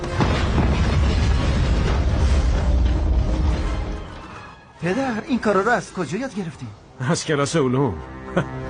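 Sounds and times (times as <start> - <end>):
explosion of ammonium nitrate mixed with gasoline: 0.1 - 3.7
speech: 4.8 - 8.6.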